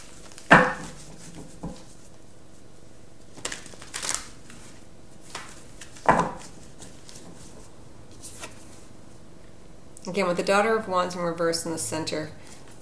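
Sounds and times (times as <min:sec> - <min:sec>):
After Tarot deck tarot cards being shuffled and drawn: 0:00.0 - 0:02.2, 0:03.3 - 0:08.9
speech: 0:10.1 - 0:12.4.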